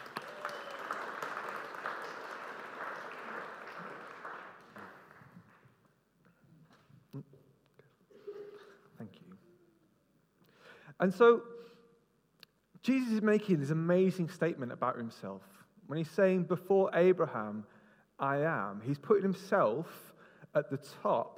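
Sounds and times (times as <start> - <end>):
audience applause: 0.0 - 5.6
speech: 11.0 - 11.5, 12.9 - 21.3.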